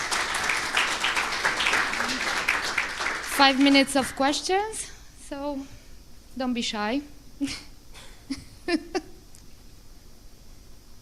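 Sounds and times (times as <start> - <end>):
audience applauding: 0.0 - 4.4
speech: 3.4 - 5.8, 6.4 - 7.7, 8.3 - 9.0.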